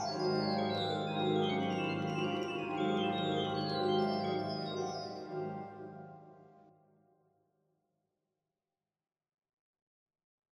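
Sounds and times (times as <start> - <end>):
organ and harp piece: 0.0 - 5.7.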